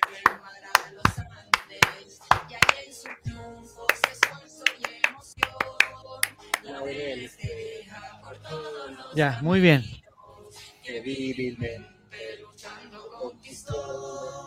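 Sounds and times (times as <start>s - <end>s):
rhythmic crowd clapping in cueca style: 0.0s - 3.2s, 3.9s - 6.8s
speech: 9.2s - 10.0s, 11.0s - 12.0s.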